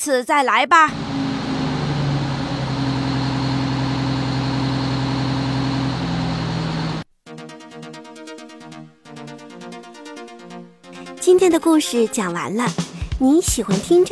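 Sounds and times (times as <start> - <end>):
speech: 0.0 - 1.1, 11.4 - 14.0
car engine running: 0.9 - 7.0.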